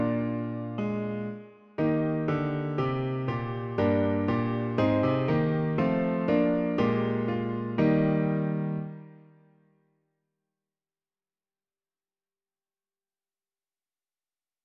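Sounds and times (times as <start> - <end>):
piano: 0.0 - 9.8.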